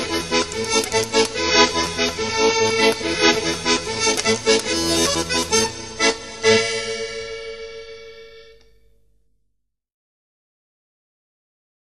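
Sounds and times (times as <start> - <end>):
polka music: 0.0 - 8.5.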